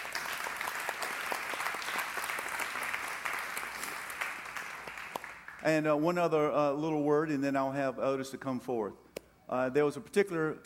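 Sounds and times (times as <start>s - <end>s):
audience clapping hands: 0.0s - 5.7s
speech: 5.6s - 10.6s.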